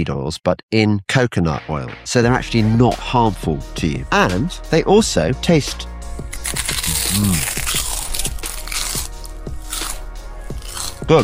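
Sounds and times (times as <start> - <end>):
speech: 0.0 - 7.8
crisps cooked in coconut oil crunching while eaten: 6.3 - 11.1.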